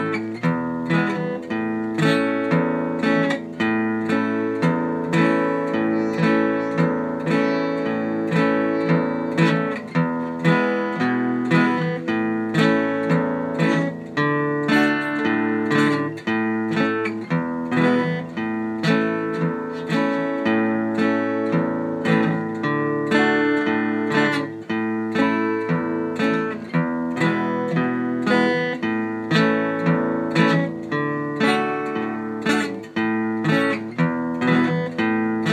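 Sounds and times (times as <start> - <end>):
guitar playing alternating basses in the key of A: 0.0 - 35.5.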